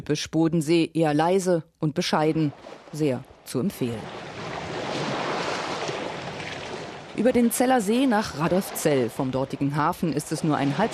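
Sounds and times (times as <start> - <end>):
speech: 0.0 - 4.3, 7.2 - 10.9
solar ferry Helio gliding over lake water: 2.2 - 10.9.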